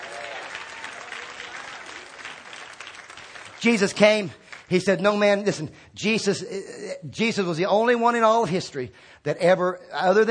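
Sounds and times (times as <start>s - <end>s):
audience clapping: 0.0s - 5.1s
speech: 3.6s - 10.3s.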